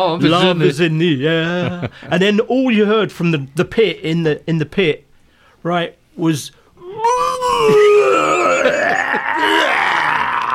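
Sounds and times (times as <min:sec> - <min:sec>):
speech: 0:00.0 - 0:05.0, 0:05.6 - 0:07.9
voice imitating vomiting: 0:06.8 - 0:10.5.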